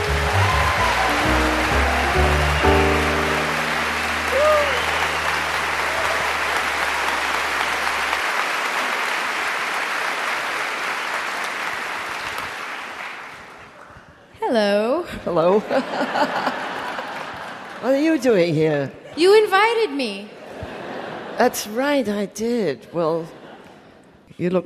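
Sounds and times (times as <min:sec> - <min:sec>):
low instrumental tones: 0:00.0 - 0:07.6
audience applause welcoming a singer: 0:00.0 - 0:14.0, 0:16.0 - 0:17.8
speech: 0:15.6 - 0:16.5, 0:17.8 - 0:20.4, 0:21.4 - 0:23.4, 0:24.4 - 0:24.6
laughter: 0:15.6 - 0:17.8, 0:20.3 - 0:21.7.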